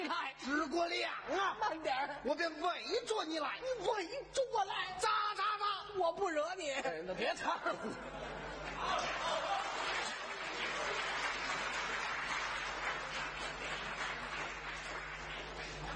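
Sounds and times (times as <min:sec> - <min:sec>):
speech: 0:00.4 - 0:09.5
audience laughter: 0:07.4 - 0:10.3
audience applause after a traditional xiangsheng comic performance: 0:08.5 - 0:15.9.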